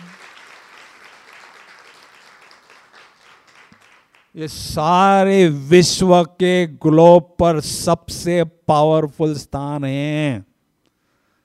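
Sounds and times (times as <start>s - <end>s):
crowd clapping: 0.0s - 4.4s
speech: 4.4s - 10.5s.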